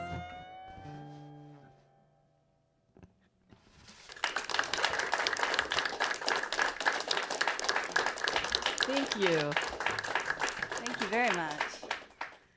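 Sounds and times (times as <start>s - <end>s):
audience clapping inside parked cars: 3.9s - 12.5s.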